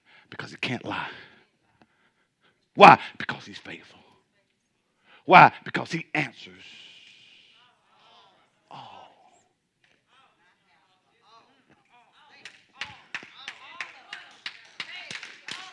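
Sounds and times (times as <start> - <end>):
speech: 0.5 - 1.2, 2.8 - 4.0, 5.3 - 6.9
clap from audience: 12.4 - 15.7.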